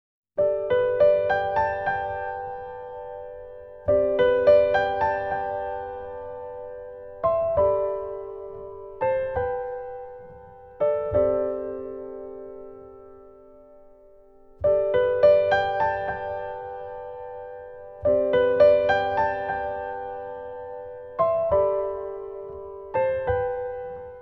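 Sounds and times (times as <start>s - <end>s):
piano solo: 0.4s - 24.1s.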